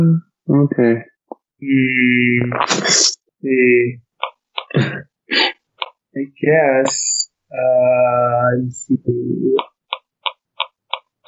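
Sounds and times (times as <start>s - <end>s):
speech: 0.0s - 4.0s, 4.7s - 5.5s, 6.2s - 9.7s
computer mouse clicks: 9.6s - 11.2s.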